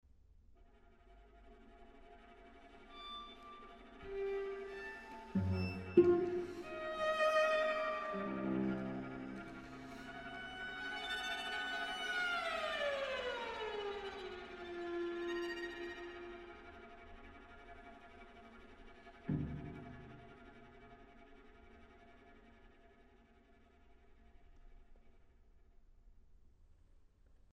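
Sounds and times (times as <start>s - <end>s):
string quartet playing short pieces: 3.6s - 17.4s, 19.1s - 20.6s.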